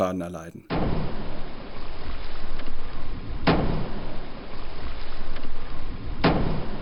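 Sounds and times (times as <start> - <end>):
speech: 0.0 - 1.2
underwater seismic air gun blast: 0.7 - 2.4, 3.0 - 4.8, 5.9 - 6.7.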